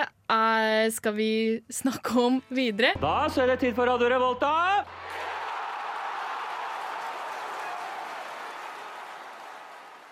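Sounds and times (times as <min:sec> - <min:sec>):
speech: 0:00.3 - 0:05.2
small round of applause: 0:05.0 - 0:10.1.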